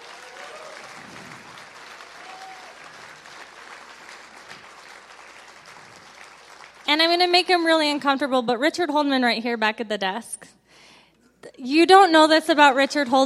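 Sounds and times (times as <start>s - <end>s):
audience applause: 0.0s - 6.9s
speech: 6.9s - 10.6s, 11.6s - 13.2s.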